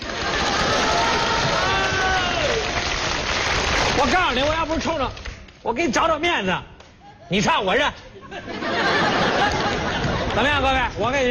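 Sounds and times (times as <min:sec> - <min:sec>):
audience applause: 0:00.0 - 0:05.4, 0:09.0 - 0:10.8
speech: 0:04.0 - 0:06.7, 0:07.3 - 0:09.7, 0:10.4 - 0:11.2
laughter: 0:07.0 - 0:11.0.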